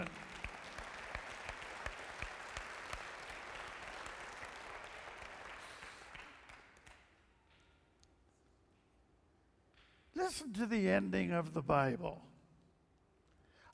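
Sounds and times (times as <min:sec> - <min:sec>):
audience applauding: 0:00.0 - 0:07.0
speech: 0:10.3 - 0:12.3.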